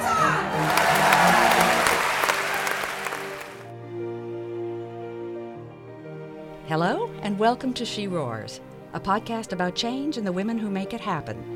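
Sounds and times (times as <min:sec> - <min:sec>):
audience roaring and cheering: 0:00.0 - 0:03.7
speech: 0:06.7 - 0:11.5.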